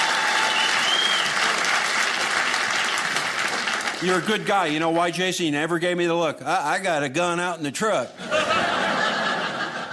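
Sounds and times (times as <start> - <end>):
audience applause: 0.0 - 4.7
speech: 4.0 - 8.4
laughter: 8.2 - 9.9.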